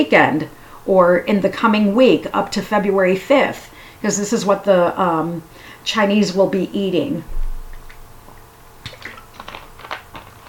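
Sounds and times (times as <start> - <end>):
speech: 0.0 - 7.4
sipping green tea: 7.7 - 10.4.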